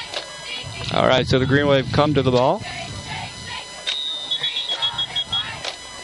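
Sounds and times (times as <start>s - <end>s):
speech: 0.9s - 2.7s
referee whistles: 3.8s - 5.6s.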